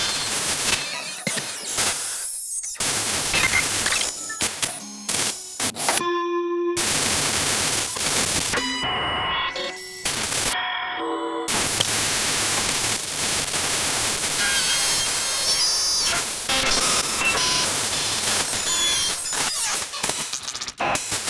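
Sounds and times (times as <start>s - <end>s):
cyber digital glitch effects: 0.0s - 6.0s, 6.8s - 10.6s, 11.5s - 21.2s.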